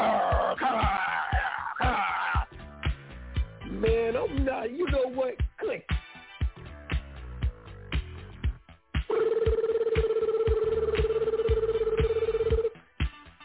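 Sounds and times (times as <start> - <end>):
thumping rhythmic beat: 0.0 - 13.4
telephone ringing with an electronic trill: 9.1 - 12.8.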